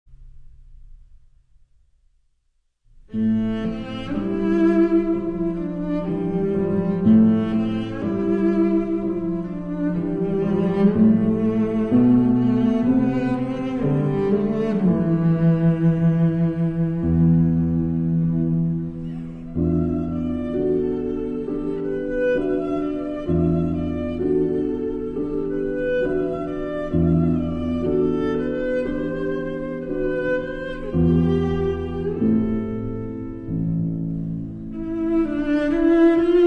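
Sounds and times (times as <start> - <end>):
piano: 2.9 - 36.4.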